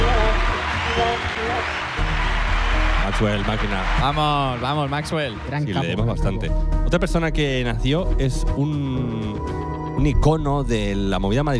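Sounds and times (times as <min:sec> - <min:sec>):
applause: 0:00.0 - 0:05.8
speech: 0:03.1 - 0:11.5.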